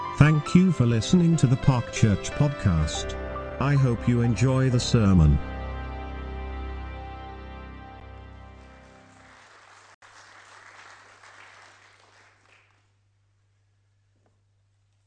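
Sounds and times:
speech: 0.2 - 5.5
audience round of applause: 8.5 - 12.9.

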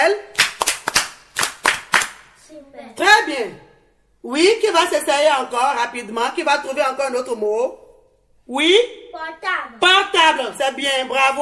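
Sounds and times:
children clapping a rhythmic classroom cheer in unison: 0.4 - 2.3
speech: 2.9 - 7.8, 8.5 - 11.4.

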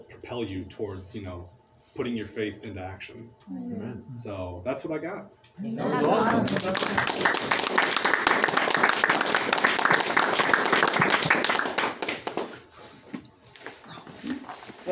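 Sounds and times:
speech: 0.3 - 8.0
audience applause: 5.9 - 12.6.

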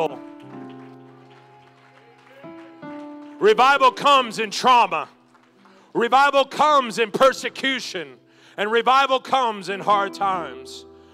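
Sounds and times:
speech: 0.0 - 0.2, 3.4 - 5.2, 6.0 - 10.9
audience hand clapping: 0.0 - 6.9.

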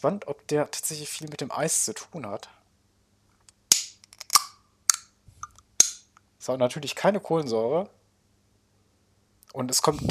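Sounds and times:
speech: 0.0 - 2.6, 6.4 - 8.0, 9.5 - 10.0
iced coffee bottle cap clicking open: 3.7 - 6.0.

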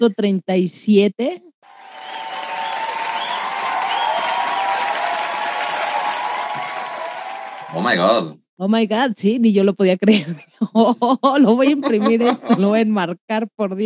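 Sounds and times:
speech: 0.0 - 1.5, 7.7 - 13.8
applause sound effect: 1.6 - 8.3
laughter: 10.1 - 12.7.

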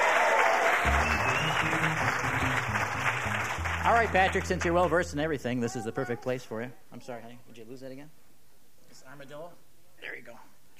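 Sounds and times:
audience applause: 0.0 - 5.1
speech: 3.9 - 8.2, 8.9 - 10.6.

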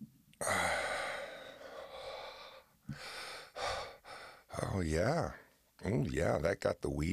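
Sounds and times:
audible breaths: 0.4 - 4.5
speech: 4.7 - 7.1.

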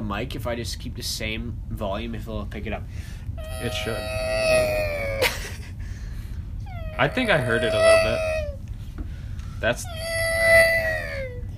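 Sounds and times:
speech: 0.1 - 5.1, 7.0 - 8.4, 9.6 - 10.0
human voice imitating a cat's meow: 3.4 - 5.3, 6.7 - 8.6, 9.8 - 11.4.

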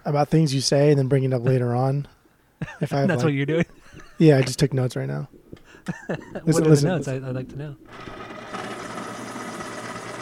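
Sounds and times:
speech: 0.1 - 8.2
laughter: 2.6 - 4.4, 5.7 - 7.5
electric pencil sharpener sharpening a pencil: 7.9 - 10.2.

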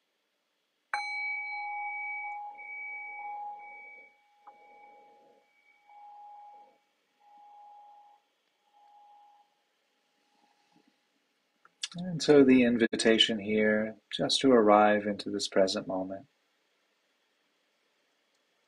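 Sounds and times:
meditation bell ringing: 1.0 - 8.2
speech: 11.9 - 16.3.

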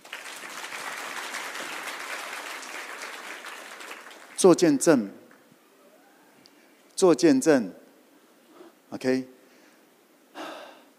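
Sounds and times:
audience clapping hands: 0.0 - 4.6
speech: 4.4 - 5.2, 7.0 - 7.8, 8.9 - 9.4.

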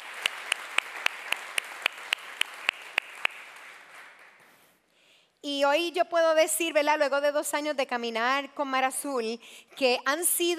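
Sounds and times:
audience applause: 0.0 - 4.5
sharp evenly spaced claps: 0.0 - 4.6
speech: 5.4 - 10.5.

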